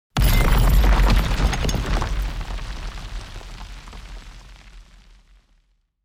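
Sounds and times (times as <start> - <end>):
stone with chains being destroyed: 0.2 - 3.0.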